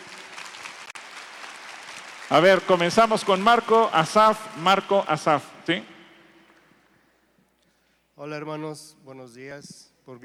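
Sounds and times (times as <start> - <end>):
audience applause: 0.0 - 5.5
speech: 2.3 - 5.9, 8.2 - 10.2.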